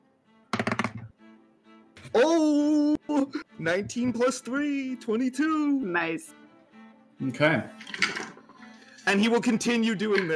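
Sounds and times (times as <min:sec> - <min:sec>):
dice rolling on a table: 0:00.6 - 0:01.0, 0:07.8 - 0:08.6
speech: 0:02.1 - 0:02.6, 0:03.3 - 0:06.4, 0:07.2 - 0:08.2, 0:09.0 - 0:10.3.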